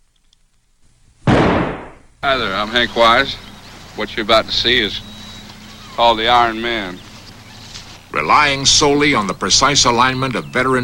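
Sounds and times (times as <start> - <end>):
revolver gunshot during a game of Russian roulette: 1.3 - 2.2
speech: 2.2 - 3.4, 4.0 - 5.1, 6.0 - 7.0, 8.1 - 10.8.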